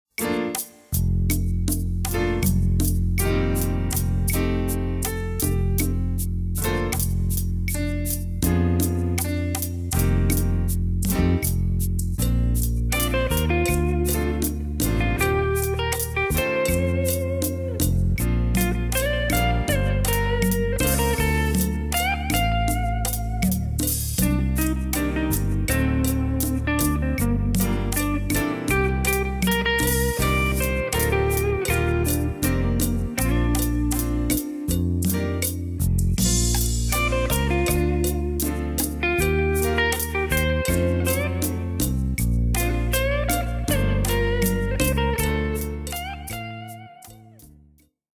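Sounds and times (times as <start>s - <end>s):
instrumental music: 0.1s - 48.0s.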